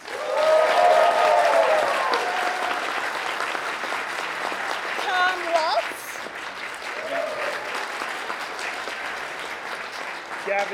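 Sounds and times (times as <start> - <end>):
faint cheering: 0.0 - 3.0, 6.9 - 7.9
audience applause: 0.0 - 10.7.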